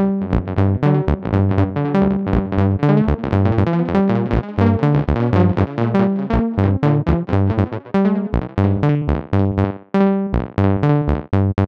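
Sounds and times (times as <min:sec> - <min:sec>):
Roland TB-03 synthesizer with tape delay: 0:00.0 - 0:11.6.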